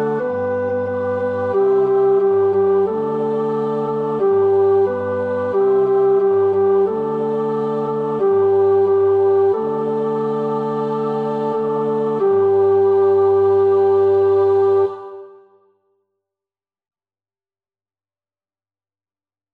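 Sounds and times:
tenor singing choir part practice: 0.0 - 15.6.

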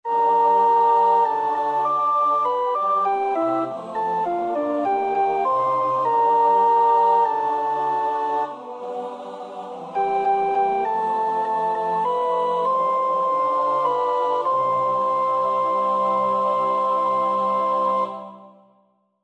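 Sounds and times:
soprano practising a choir part: 0.1 - 18.8.

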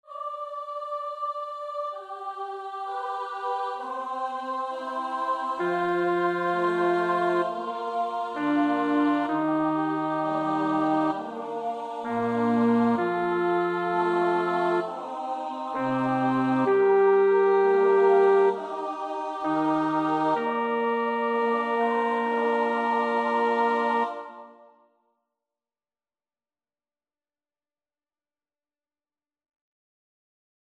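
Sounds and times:
bass choir part practice: 0.1 - 24.6.

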